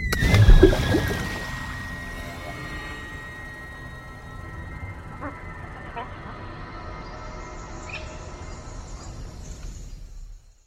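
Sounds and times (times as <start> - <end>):
water falling from a bridge: 0.2 - 1.5.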